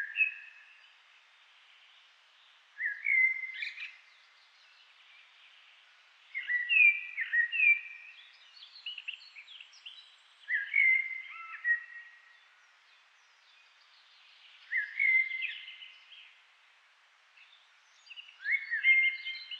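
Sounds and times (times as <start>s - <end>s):
common blackbird Turdus merula singing: 0.0s - 0.8s, 2.8s - 5.3s, 6.3s - 12.4s, 13.2s - 16.3s, 17.4s - 19.5s.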